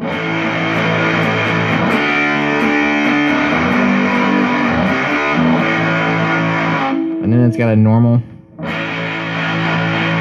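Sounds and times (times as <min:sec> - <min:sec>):
fuzz star pedal on bright setting: 0:00.0 - 0:10.1
speech: 0:07.5 - 0:08.7.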